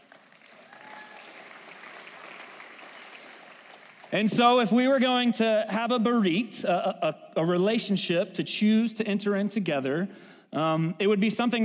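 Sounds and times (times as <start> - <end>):
audience round of applause: 0.0 - 4.3
speech: 4.1 - 11.6.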